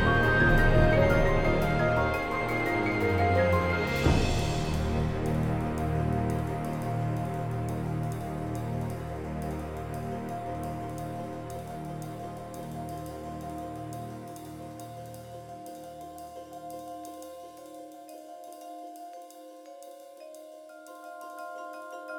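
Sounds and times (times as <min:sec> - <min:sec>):
ambient menu music: 0:00.0 - 0:14.3.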